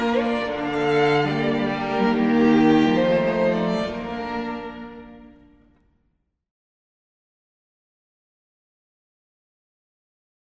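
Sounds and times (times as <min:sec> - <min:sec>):
classical wedding music: 0:00.0 - 0:06.0.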